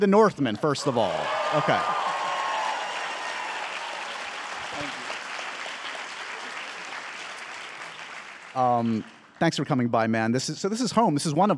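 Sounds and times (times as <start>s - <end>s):
speech: 0.0s - 2.0s, 8.6s - 11.5s
audience applause for a movie in New York City: 0.6s - 9.6s.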